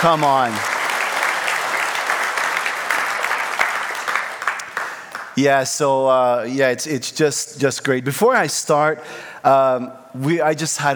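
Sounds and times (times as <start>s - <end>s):
speech: 0.0s - 0.7s, 5.4s - 10.9s
audience applause: 0.0s - 5.4s.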